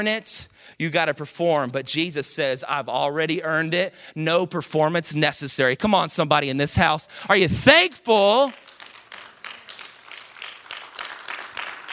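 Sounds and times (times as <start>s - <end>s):
speech: 0.0s - 8.7s
light scattered golf claps: 8.3s - 11.9s.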